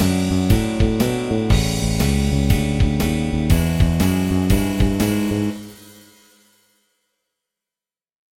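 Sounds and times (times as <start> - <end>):
blues practice bass guitar: 0.0 - 5.6.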